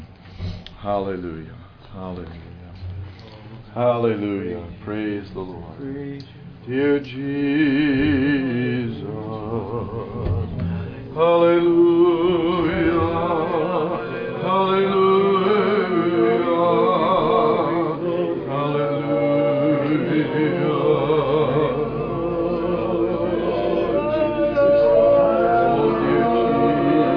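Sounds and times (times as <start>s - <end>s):
person praying: 0.8s - 27.1s
person singing: 6.8s - 27.1s.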